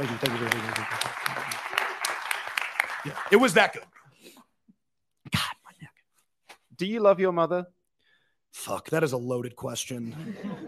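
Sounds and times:
speech: 0:00.0 - 0:01.8, 0:03.0 - 0:04.0, 0:06.8 - 0:07.8, 0:08.5 - 0:10.6
hand clapping: 0:00.0 - 0:03.8
laughter: 0:10.0 - 0:10.6.

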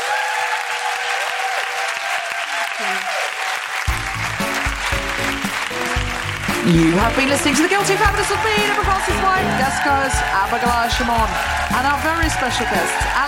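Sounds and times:
audience round of applause: 0:00.0 - 0:13.2
speech: 0:02.8 - 0:03.2, 0:06.7 - 0:13.2
music: 0:03.8 - 0:13.2.

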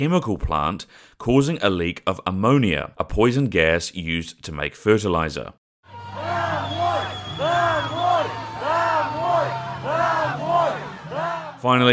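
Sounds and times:
speech: 0:00.0 - 0:05.6, 0:11.6 - 0:11.9
crowds shouting at occupants of Russian military trucks: 0:05.9 - 0:11.7.

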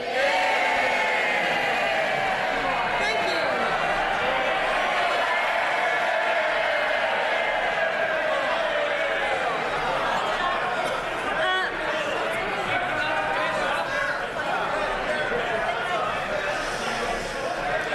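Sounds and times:
MPs cheering in House of Commons: 0:00.0 - 0:17.9.

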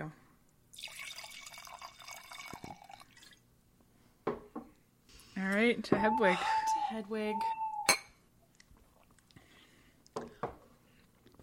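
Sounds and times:
liquid pouring out: 0:00.7 - 0:03.4
speech: 0:05.4 - 0:07.6
glass clinks: 0:07.8 - 0:08.2.

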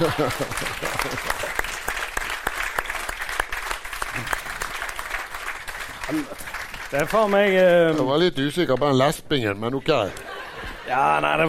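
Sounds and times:
laughter: 0:00.0 - 0:01.6, 0:09.7 - 0:11.4
speech: 0:00.0 - 0:01.6, 0:04.2 - 0:04.4, 0:06.1 - 0:10.3, 0:10.9 - 0:11.4
audience applause: 0:00.0 - 0:08.0.

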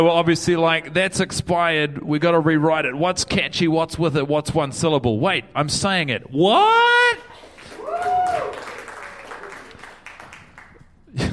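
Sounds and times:
speech: 0:00.0 - 0:07.2
people applauding: 0:07.3 - 0:11.3.

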